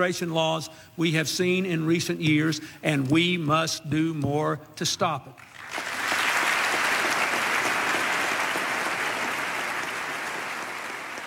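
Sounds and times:
speech: 0.0s - 5.9s
applause after a political speech: 5.4s - 11.2s.

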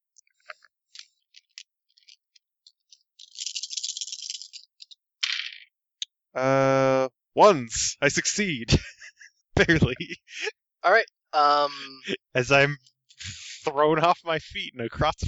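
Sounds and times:
dice rattling: 0.9s - 2.2s, 2.9s - 5.7s
speech: 6.4s - 9.0s, 9.6s - 15.2s
laughter: 7.8s - 10.5s, 11.4s - 15.0s.

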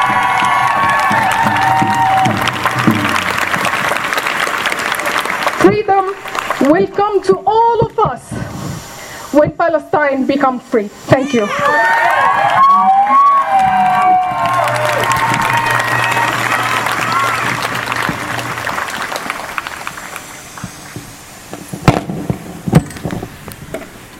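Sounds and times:
crowd applauding: 0.0s - 6.8s, 11.7s - 21.2s
speech: 6.7s - 8.6s, 9.3s - 12.7s.

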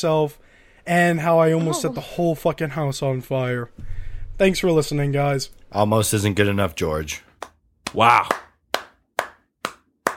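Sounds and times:
speech: 0.0s - 7.3s, 7.9s - 8.4s
slow clap: 7.4s - 10.1s.

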